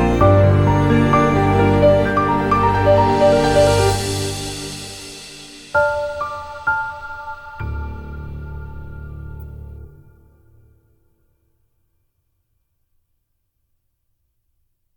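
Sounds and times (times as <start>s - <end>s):
sad violin: 0.0s - 5.7s.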